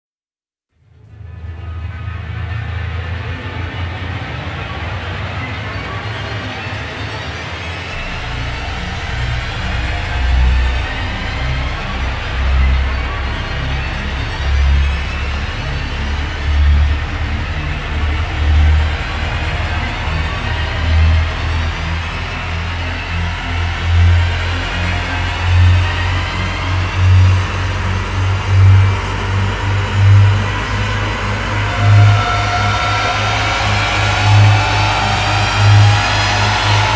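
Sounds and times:
rising outcry sound: 7.9 - 36.9.

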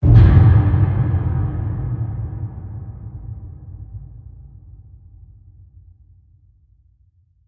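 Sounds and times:
deep hit: 0.0 - 5.6.

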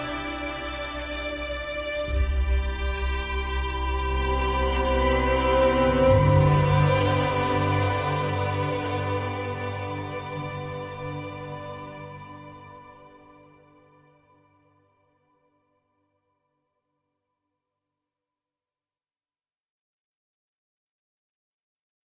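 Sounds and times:
ambient music: 0.0 - 15.0.

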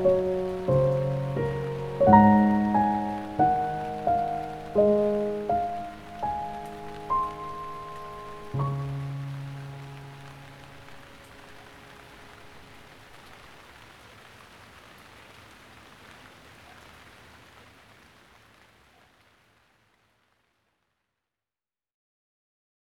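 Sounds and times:
calming piano music: 0.0 - 13.0
rain: 0.0 - 21.0.

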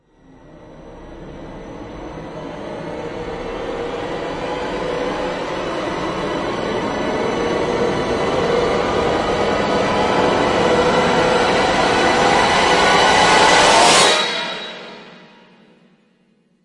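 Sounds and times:
rising wind of fury: 1.6 - 14.3.

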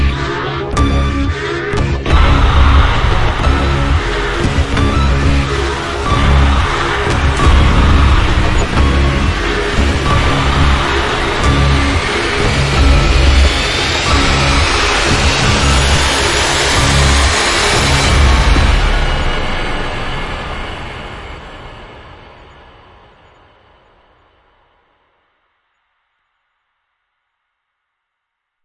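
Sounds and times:
music without drums: 0.0 - 19.8.

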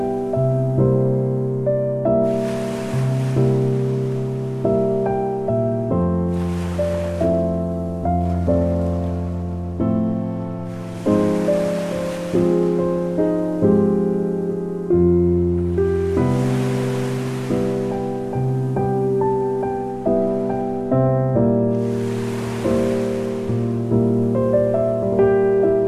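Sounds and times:
piano: 0.0 - 25.8
beach waves: 2.2 - 9.6, 10.6 - 14.3, 15.6 - 20.8, 21.7 - 25.4.

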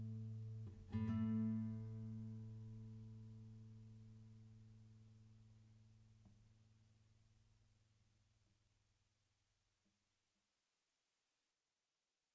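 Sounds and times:
traditional Chinese music for guitar: 0.0 - 4.4.

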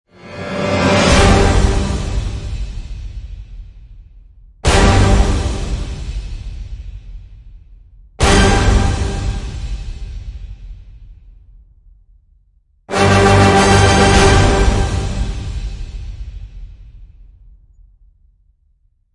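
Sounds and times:
orchestral end hits in G: 0.3 - 2.8, 4.6 - 6.2, 8.2 - 10.0, 12.9 - 16.4.

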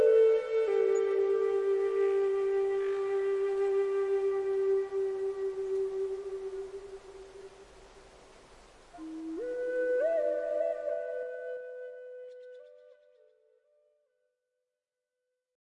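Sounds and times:
flute lullaby for sleep and relaxation: 0.0 - 7.7, 8.9 - 13.5
nature sounds: 0.0 - 13.6.

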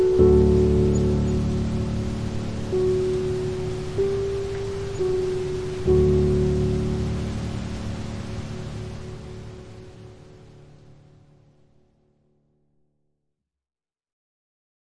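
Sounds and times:
rain: 0.0 - 11.8
piano: 0.0 - 12.7.

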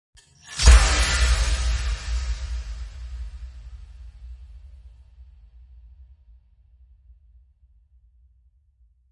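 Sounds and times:
abstract explosion impact: 0.5 - 3.8.

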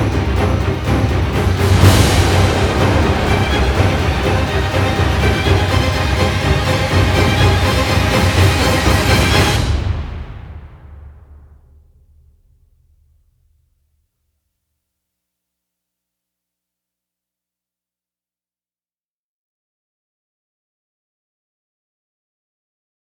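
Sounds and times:
orchestra playing: 0.0 - 11.0
percussion: 0.0 - 12.6.

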